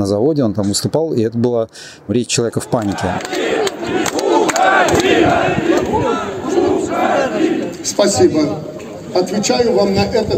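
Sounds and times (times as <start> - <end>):
speech: 0.0 - 6.3, 6.9 - 10.3
large crowd of workers shouting and jeering: 2.6 - 7.9.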